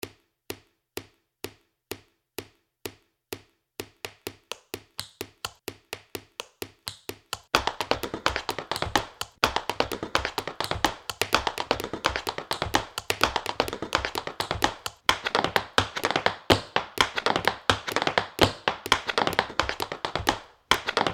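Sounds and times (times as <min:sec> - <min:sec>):
rhythm: 0:04.0 - 0:21.1.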